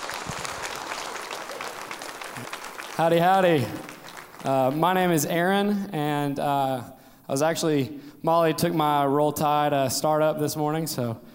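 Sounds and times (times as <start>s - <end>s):
audience applause welcoming the next speaker onto the stage: 0.0s - 4.9s
speech: 2.4s - 11.3s.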